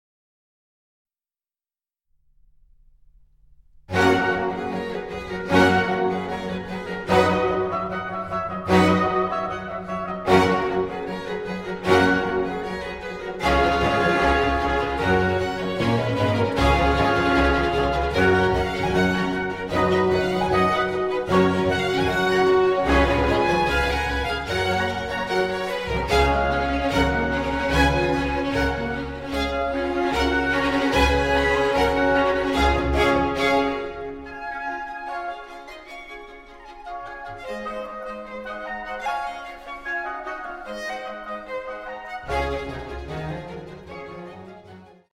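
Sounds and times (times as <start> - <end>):
orchestral symphony movement in G major: 3.9 - 45.1.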